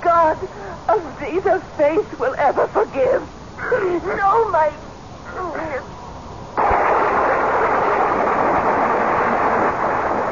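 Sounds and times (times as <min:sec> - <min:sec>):
speech: 0:00.3 - 0:04.8
lightning strike: 0:06.6 - 0:10.2
thunder: 0:06.6 - 0:10.2.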